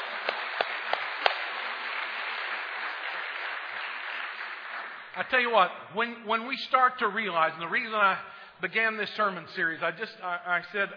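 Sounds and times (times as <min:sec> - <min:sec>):
audience applauding: 0:00.0 - 0:05.4
speech: 0:05.2 - 0:10.9.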